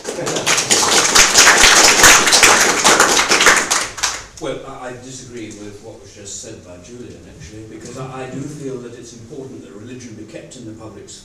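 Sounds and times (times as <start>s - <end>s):
audience applause: 0.0s - 4.5s
speech: 0.2s - 0.8s, 4.4s - 11.2s.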